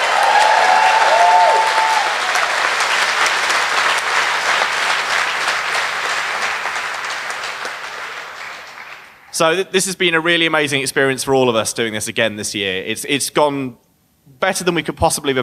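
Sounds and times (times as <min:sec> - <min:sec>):
audience applause: 0:00.0 - 0:09.3
speech: 0:09.4 - 0:15.4.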